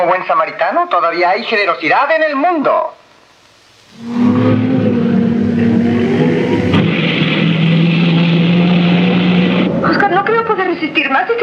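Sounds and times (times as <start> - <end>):
speech: 0.0 - 3.0, 3.9 - 4.6, 10.1 - 11.4
race car engine warming up: 3.9 - 10.3.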